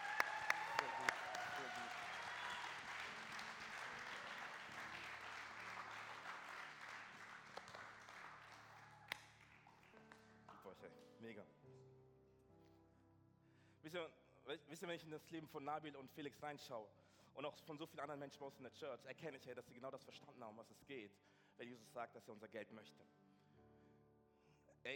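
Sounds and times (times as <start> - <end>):
crowd applauding: 0.0 - 10.6
speech: 10.7 - 11.8, 13.9 - 23.2.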